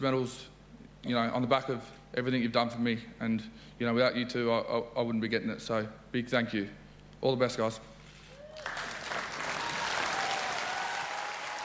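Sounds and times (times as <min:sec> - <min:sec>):
speech: 0:00.0 - 0:07.9
audience applause: 0:08.4 - 0:11.6.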